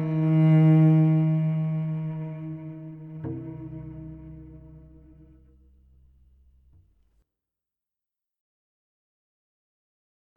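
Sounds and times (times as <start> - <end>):
cello intro: 0.0 - 6.8.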